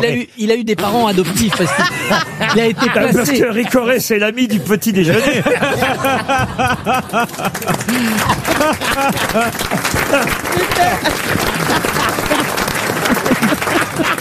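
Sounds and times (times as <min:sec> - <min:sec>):
speech: 0:00.0 - 0:11.7
laughter and voices: 0:00.8 - 0:14.1
audience applause: 0:05.4 - 0:14.1.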